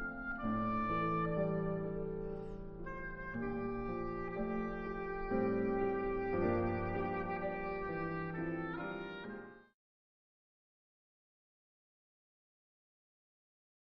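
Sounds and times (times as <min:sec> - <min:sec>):
oboe sonata: 0:00.0 - 0:09.8.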